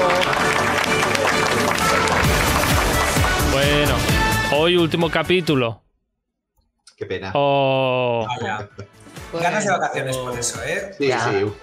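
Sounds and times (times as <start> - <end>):
applause: 0.0 - 4.3
speech: 4.7 - 5.8, 7.0 - 11.6.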